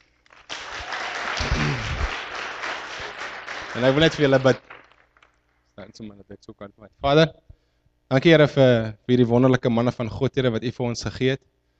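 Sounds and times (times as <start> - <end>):
crowd applauding: 0.0 - 5.6
speech: 3.8 - 4.7, 6.0 - 7.5, 8.1 - 11.6.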